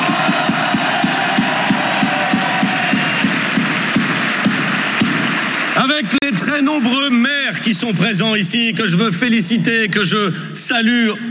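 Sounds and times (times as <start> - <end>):
crowd applause at a political gathering: 0.0 - 8.1
sharp evenly spaced clapping beats: 0.0 - 8.4
speech: 6.0 - 11.2.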